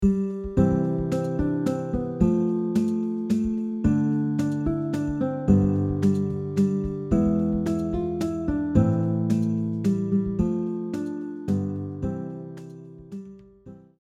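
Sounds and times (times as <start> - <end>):
guitar: 0.0 - 13.9.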